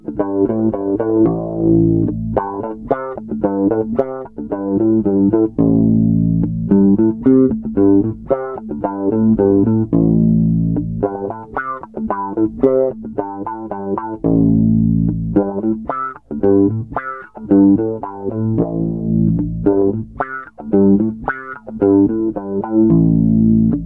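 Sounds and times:
bass groove sweep: 0:00.2 - 0:11.5, 0:13.7 - 0:23.8.

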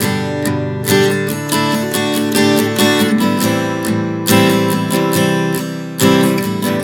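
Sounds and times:
acoustic guitar G-D-Am-C chord progression: 0:00.0 - 0:06.8.

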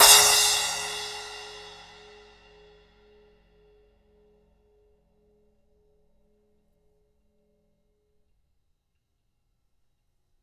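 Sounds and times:
splash cymbal played with rods: 0:00.0 - 0:02.6.

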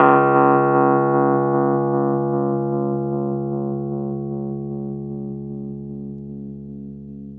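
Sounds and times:
Rhodes 73 electric piano D# note: 0:00.0 - 0:04.3.

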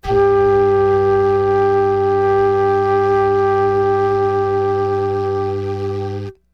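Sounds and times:
flute hum on G4: 0:00.0 - 0:06.5.

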